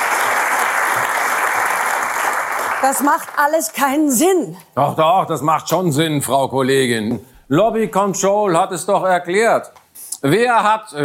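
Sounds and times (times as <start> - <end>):
studio audience applause: 0.0 - 3.8
speech: 2.8 - 11.0.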